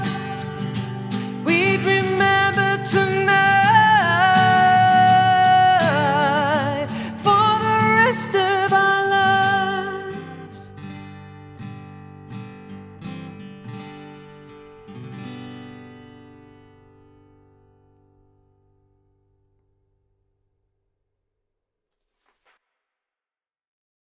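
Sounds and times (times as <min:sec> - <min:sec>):
acoustic cover song: 0:00.0 - 0:19.1.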